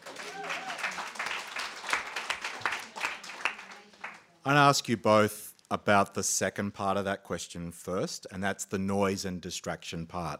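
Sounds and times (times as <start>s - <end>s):
audience applause: 0.0s - 4.3s
speech: 4.4s - 10.3s.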